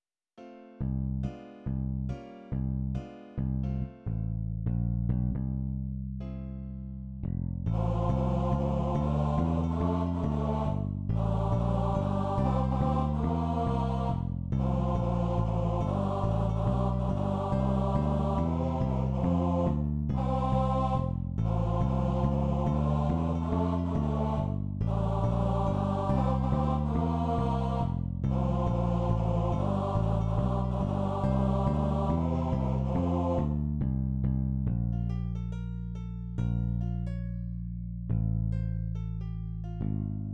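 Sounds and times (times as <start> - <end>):
bass: 0.8 - 40.3.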